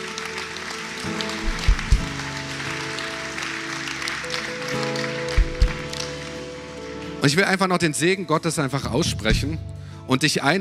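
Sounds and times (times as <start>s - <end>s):
audience applause: 0.0s - 7.4s
speech: 7.2s - 10.5s.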